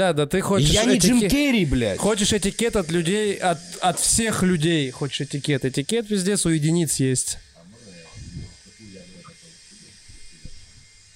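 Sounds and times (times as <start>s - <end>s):
speech: 0.0s - 7.5s
angle grinder cutting: 0.6s - 11.1s.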